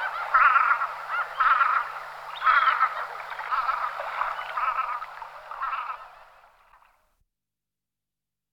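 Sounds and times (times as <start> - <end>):
velvet scoter Melanitta fusca: 0.0 - 6.1.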